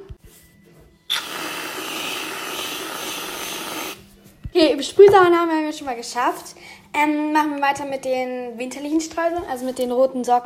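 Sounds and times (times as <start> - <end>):
whipped cream spray can: 1.1 - 4.0
speech: 4.6 - 10.4.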